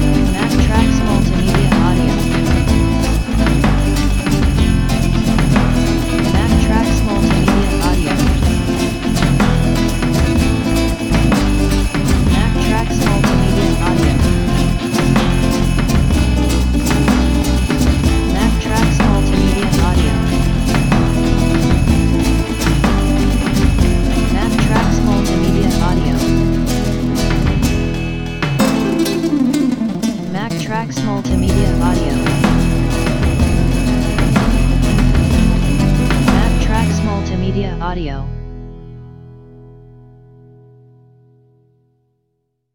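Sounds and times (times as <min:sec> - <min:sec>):
flamenco guitar: 0:00.0 - 0:37.3.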